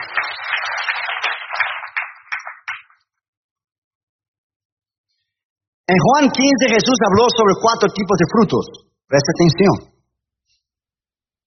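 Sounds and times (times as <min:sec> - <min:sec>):
audience applause: 0:00.0 - 0:02.9
speech: 0:05.9 - 0:09.9.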